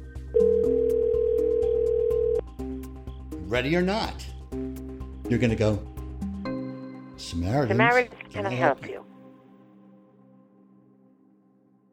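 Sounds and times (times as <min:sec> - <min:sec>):
telephone ringing: 0:00.4 - 0:02.4
speech: 0:03.5 - 0:04.3, 0:05.3 - 0:05.9, 0:07.2 - 0:09.0.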